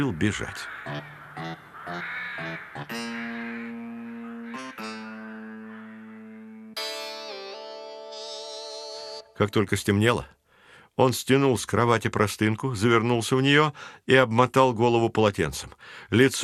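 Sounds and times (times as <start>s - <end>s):
speech: 0.0s - 1.5s, 9.4s - 10.4s, 11.0s - 16.4s
birds circling a balcony and cawing: 0.0s - 6.8s.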